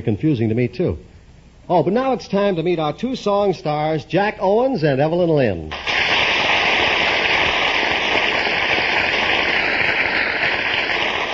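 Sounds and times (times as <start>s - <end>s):
speech: 0.0s - 1.1s, 1.7s - 5.9s
audience applause: 5.9s - 11.3s.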